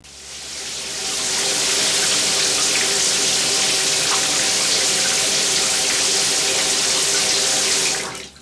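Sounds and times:
shower running: 0.0s - 8.4s.

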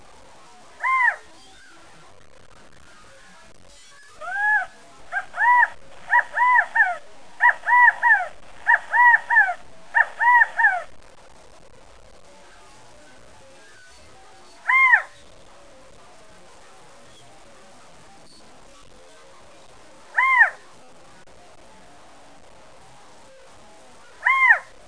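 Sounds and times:
California quail calling: 0.8s - 1.3s, 4.2s - 10.9s, 14.6s - 15.2s, 20.1s - 20.6s, 24.1s - 24.8s.

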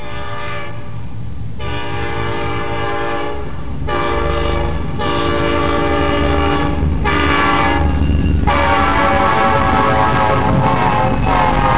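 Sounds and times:
train: 0.0s - 11.7s.

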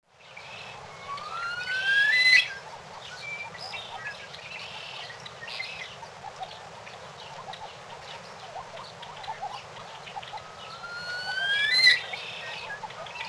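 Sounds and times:
bird whistled call: 0.6s - 4.2s, 10.2s - 13.2s.

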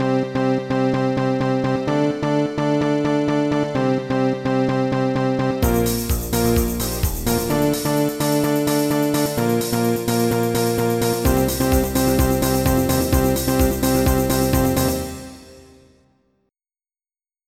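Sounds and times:
techno music: 0.0s - 15.9s.

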